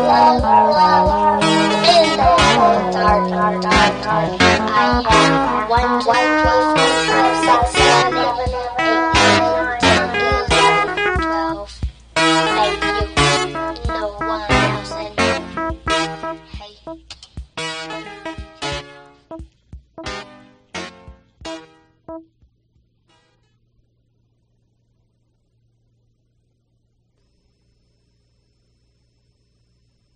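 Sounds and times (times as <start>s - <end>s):
synthesizer: 0.0s - 22.4s.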